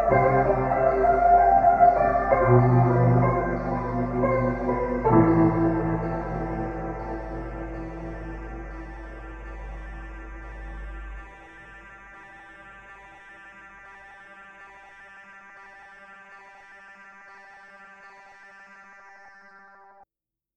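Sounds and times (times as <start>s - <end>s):
dark ambient piano music: 0.0s - 16.1s.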